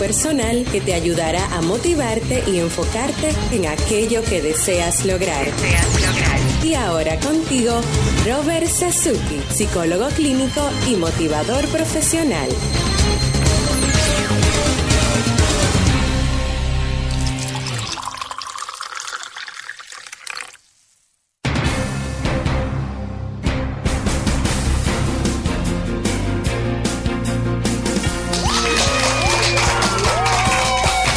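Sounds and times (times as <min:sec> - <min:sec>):
speech: 0:00.0 - 0:13.3
music: 0:00.0 - 0:18.1, 0:21.4 - 0:31.1
loud sustained applause: 0:28.2 - 0:31.1.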